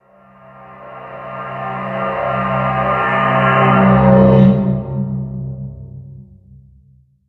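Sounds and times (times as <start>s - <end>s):
atmospheric visual effects sounds: 0.0s - 5.8s.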